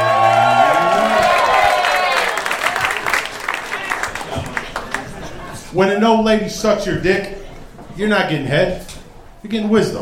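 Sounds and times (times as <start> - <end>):
audience whooping and yelling for a comedian: 0.0 - 4.1
audience clapping for a comedian: 0.0 - 5.4
speech: 5.8 - 7.4, 8.0 - 10.0.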